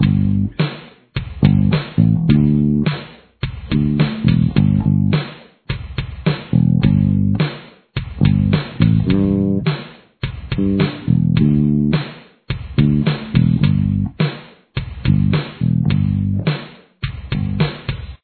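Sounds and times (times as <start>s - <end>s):
bass: 0.0s - 18.2s.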